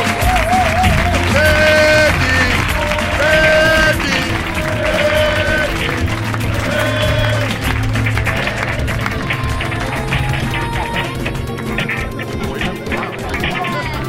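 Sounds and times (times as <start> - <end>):
audience clapping and cheering welcoming a female singer: 0.0 - 14.0
bright melodic tune: 0.0 - 14.0
laughter: 0.0 - 14.0.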